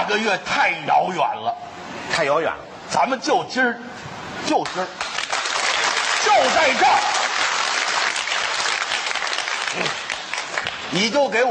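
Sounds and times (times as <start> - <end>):
speech: 0.1 - 5.1, 6.2 - 7.2, 9.8 - 10.0, 10.9 - 11.4
audience applause at a live stage comedy performance: 5.0 - 10.9.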